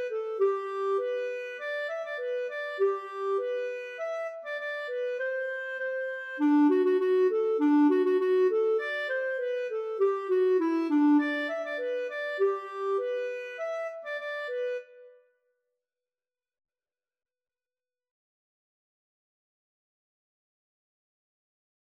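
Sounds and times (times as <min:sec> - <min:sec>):
polka music from Roros: 0:00.0 - 0:14.8.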